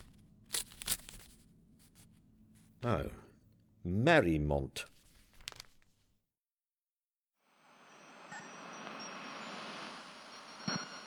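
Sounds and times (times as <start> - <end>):
paper envelope being torn open: 0.0 - 2.0, 5.0 - 5.9
speech: 2.8 - 3.2, 3.8 - 4.9.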